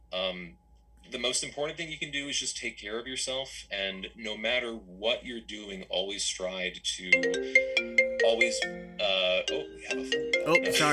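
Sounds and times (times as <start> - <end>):
speech: 0.1 - 10.9
Siri notification tones on a smartphone connected to a computer: 7.2 - 10.9.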